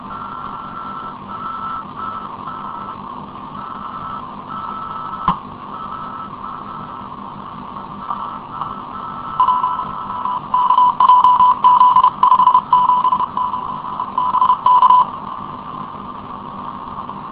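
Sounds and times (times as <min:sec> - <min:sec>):
CW Morse code beeps: 0:00.1 - 0:03.0, 0:03.6 - 0:07.1, 0:08.0 - 0:15.1.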